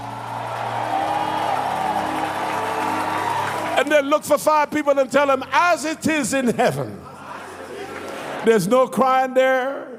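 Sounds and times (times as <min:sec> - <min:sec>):
audience clapping and cheering: 0:00.0 - 0:05.8
speech: 0:03.8 - 0:07.1, 0:08.4 - 0:09.9.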